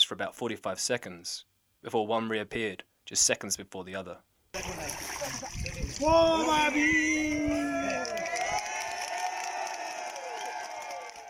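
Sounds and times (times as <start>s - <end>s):
speech: 0.1s - 7.7s
watching crowd cheering: 6.0s - 11.2s.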